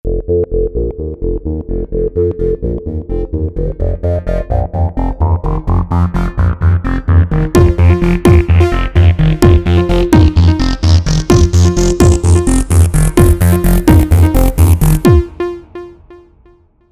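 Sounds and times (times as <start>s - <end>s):
music buildup: 0.3s - 16.6s.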